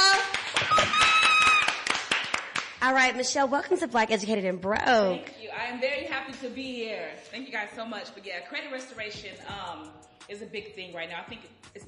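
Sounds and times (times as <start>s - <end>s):
audience clapping: 0.0s - 3.0s
high whoop or cheer: 0.2s - 1.9s
speech: 2.8s - 11.8s.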